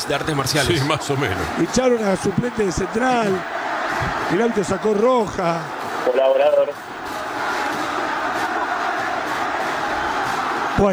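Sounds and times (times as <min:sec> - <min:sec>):
speech: 0:00.0 - 0:06.9, 0:10.8 - 0:10.9
laughter: 0:00.0 - 0:10.9
standing stadium crowd shouting and cheering: 0:00.0 - 0:10.9.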